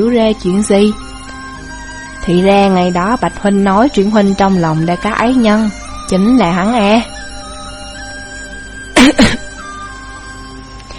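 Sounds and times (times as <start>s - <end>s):
speech: 0.0s - 1.1s, 2.3s - 7.2s
harsh coughs from choking on tea: 9.0s - 9.5s.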